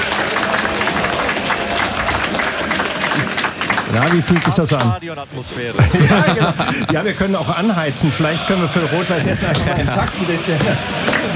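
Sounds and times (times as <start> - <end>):
large studio audience applause: 0.0 - 5.1, 5.8 - 7.1, 9.9 - 11.3
speech: 4.0 - 11.3
laughter: 5.6 - 11.3.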